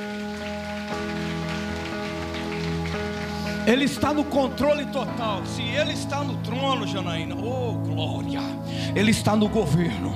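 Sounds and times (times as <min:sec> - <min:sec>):
audience applause: 0:00.0 - 0:04.4
sustained keyboard chords: 0:00.0 - 0:10.1
speech: 0:03.7 - 0:10.1.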